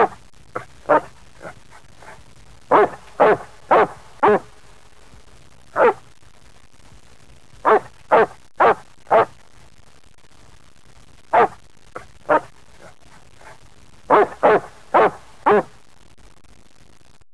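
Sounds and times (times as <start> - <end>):
dog barking: 0.0 - 4.5, 5.8 - 6.0, 7.6 - 9.4, 11.3 - 15.7.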